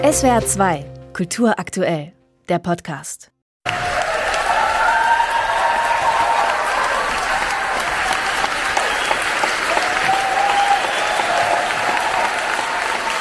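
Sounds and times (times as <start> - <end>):
speech: 0.1 - 3.3
faint cheers and whistles: 3.7 - 13.1
standing ovation applause in cinema hall: 3.7 - 13.1.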